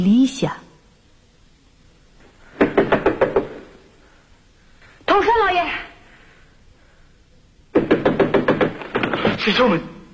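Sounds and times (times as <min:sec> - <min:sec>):
speech: 0:00.0 - 0:00.6, 0:09.5 - 0:10.0
knocking on a door in a dramatized scene of a classic tragedy: 0:02.6 - 0:03.7, 0:07.7 - 0:09.4.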